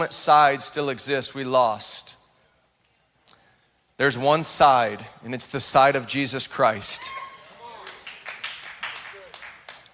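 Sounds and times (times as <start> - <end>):
speech: 0.0 - 2.2, 4.0 - 7.3
audience clapping: 7.8 - 9.9.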